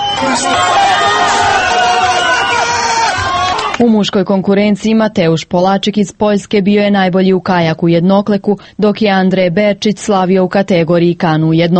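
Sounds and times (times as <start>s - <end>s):
spectators cheering at a canoe-kayak race on the Vrbas river: 0.0s - 3.8s
speech: 0.3s - 0.7s, 3.8s - 11.7s.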